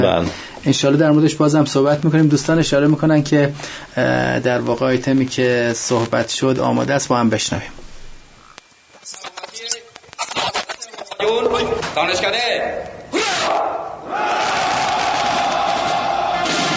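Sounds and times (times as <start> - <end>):
speech: 0.0 - 7.8, 12.0 - 13.0
army officers cheering hurrah for commander: 12.6 - 16.7.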